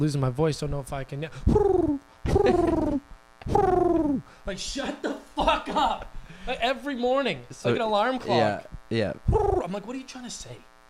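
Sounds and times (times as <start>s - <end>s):
speech: 0.0s - 10.7s
person imitating pigeon cooing: 1.4s - 4.4s, 9.2s - 9.8s.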